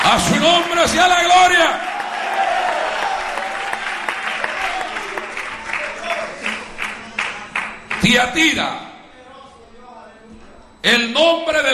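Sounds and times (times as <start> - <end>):
audience applauding: 0.0 - 8.1
speech: 0.1 - 1.9, 8.1 - 8.9, 10.8 - 11.7.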